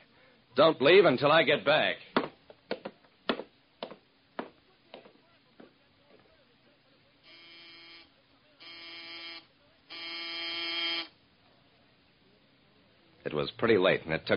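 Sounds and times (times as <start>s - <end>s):
speech: 0.6s - 2.1s, 13.5s - 14.3s
sharp taps: 2.2s - 5.7s
buzzing doorbell: 7.3s - 11.1s.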